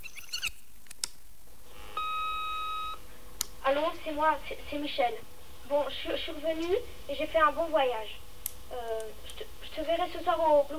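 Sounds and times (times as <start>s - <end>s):
answering machine tape rewinding: 1.7s - 3.0s
speech: 3.7s - 10.7s.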